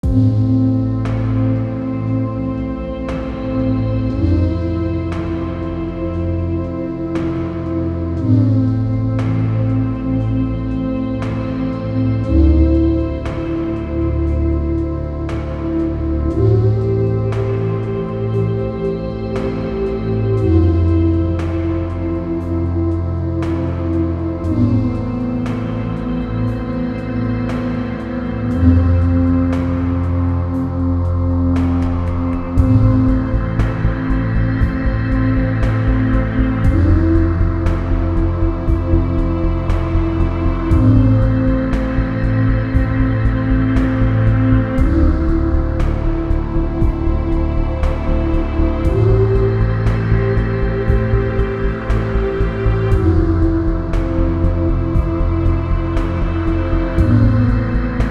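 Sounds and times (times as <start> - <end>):
ambient music: 0.0 - 58.0.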